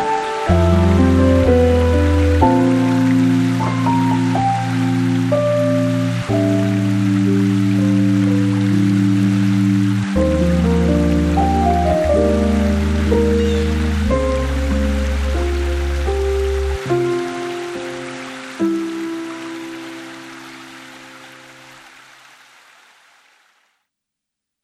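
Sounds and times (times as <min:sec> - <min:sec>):
ambient sound: 0:00.0 - 0:18.5.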